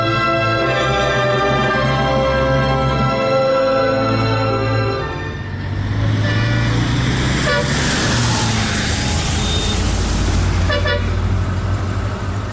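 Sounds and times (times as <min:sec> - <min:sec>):
car engine rumbling as the vehicle pulls up and stops: 0:00.2 - 0:12.5
car horn toots: 0:06.2 - 0:07.8, 0:09.3 - 0:10.0, 0:10.7 - 0:11.2.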